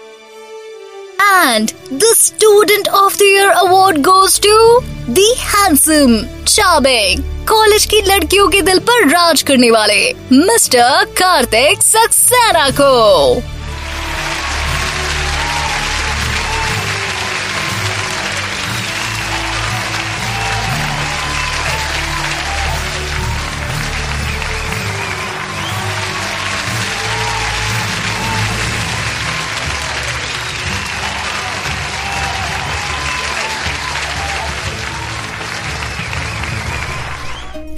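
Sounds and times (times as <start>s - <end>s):
speech: 1.4s - 13.5s
thunderous applause filling a hall: 12.5s - 37.7s.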